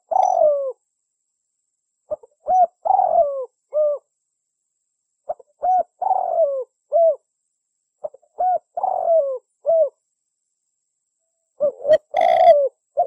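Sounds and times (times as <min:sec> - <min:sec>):
Spotted Dove cooing as a lure call: 0:00.0 - 0:00.8, 0:02.1 - 0:04.1, 0:05.3 - 0:07.2, 0:08.0 - 0:10.0, 0:11.6 - 0:13.0.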